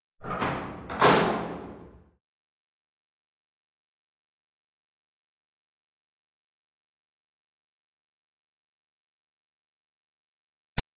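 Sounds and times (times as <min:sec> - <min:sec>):
doors: 0:00.0 - 0:02.2.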